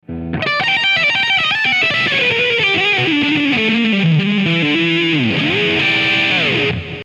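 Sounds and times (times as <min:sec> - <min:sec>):
rock guitar blues lick: 0:00.0 - 0:07.0.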